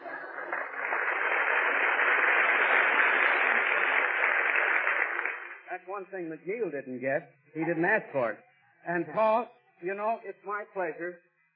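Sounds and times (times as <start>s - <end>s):
studio audience applause in an old 1940s radio recording: 0.0s - 5.7s
speech: 5.9s - 11.3s.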